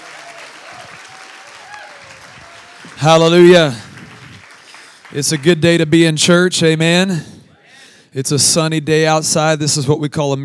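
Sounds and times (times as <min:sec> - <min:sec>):
church audience applause welcoming a pastor: 0:00.0 - 0:05.8
speech: 0:02.9 - 0:03.8, 0:05.1 - 0:07.4, 0:08.1 - 0:10.4.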